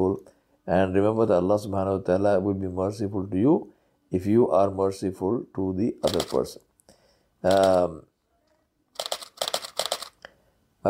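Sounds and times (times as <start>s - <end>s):
speech: 0.0s - 6.7s, 7.4s - 8.1s
camera shutter clicking while photographing goldfinches on a flowering peach tree: 6.0s - 6.5s, 7.5s - 7.9s, 9.0s - 10.2s.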